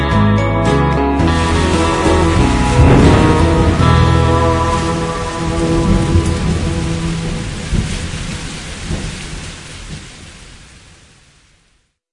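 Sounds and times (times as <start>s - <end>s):
guitar instrumental: 0.0s - 8.0s.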